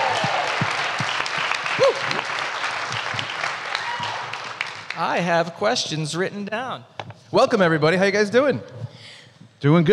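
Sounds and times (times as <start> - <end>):
audience clapping: 0.0 - 5.7
speech: 5.0 - 8.8, 9.6 - 9.9.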